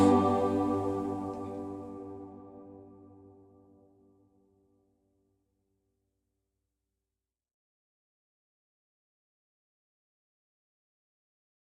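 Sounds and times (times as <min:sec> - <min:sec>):
choir singing: 0:00.0 - 0:03.2.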